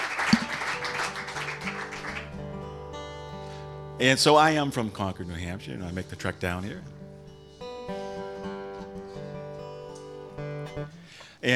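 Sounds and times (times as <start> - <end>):
audience applause welcoming a comedian: 0.0 - 2.4
speech: 4.0 - 7.0.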